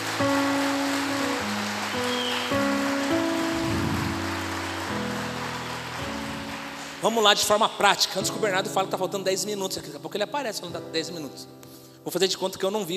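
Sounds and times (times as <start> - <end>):
crowd audience applause: 0.0 - 7.9
speech: 7.0 - 12.9.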